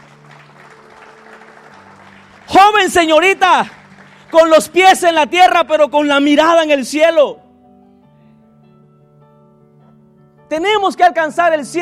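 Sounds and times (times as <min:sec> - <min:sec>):
audience applause: 0:00.0 - 0:04.8
speech: 0:02.5 - 0:07.4, 0:10.5 - 0:11.8.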